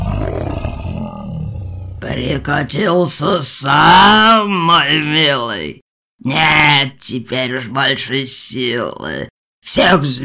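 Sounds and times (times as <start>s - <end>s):
brown bear roaring: 0.0s - 2.2s
speech: 2.0s - 10.2s.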